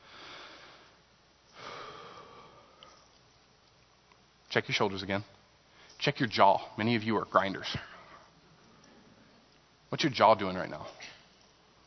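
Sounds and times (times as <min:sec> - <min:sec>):
group taking a deep breath during a guided relaxation exercise: 0:00.0 - 0:01.0, 0:01.6 - 0:03.1
speech: 0:04.5 - 0:05.4, 0:06.0 - 0:07.9, 0:09.9 - 0:11.2.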